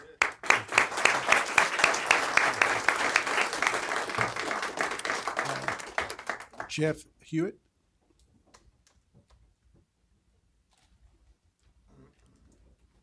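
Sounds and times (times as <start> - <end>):
audience round of applause: 0.0 - 6.9
speech: 6.8 - 7.6.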